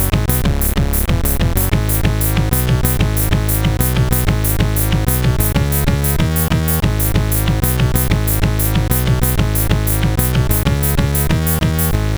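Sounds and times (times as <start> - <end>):
chiptune music on a sound chip: 0.0 - 12.0.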